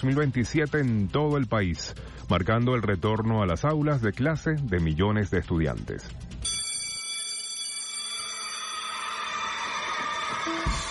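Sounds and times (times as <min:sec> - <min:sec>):
speech: 0:00.0 - 0:06.4
school bell ringing: 0:06.4 - 0:10.8.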